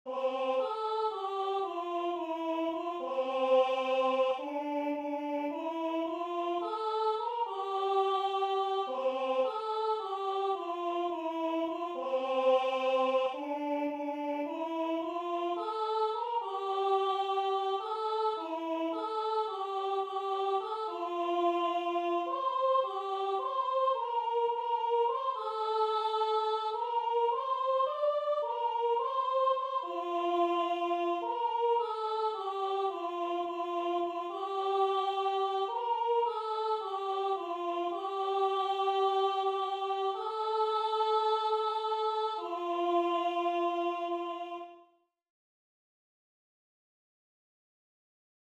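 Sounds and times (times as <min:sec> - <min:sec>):
soprano singing a hymn in French: 0:00.1 - 0:44.8.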